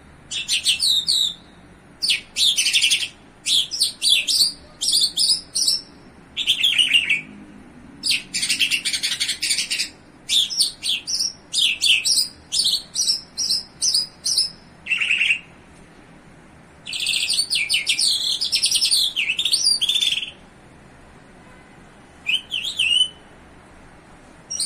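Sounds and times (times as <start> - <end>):
bimaculated lark song: 0.3 - 7.3, 8.0 - 15.5, 16.8 - 20.4, 22.3 - 23.2.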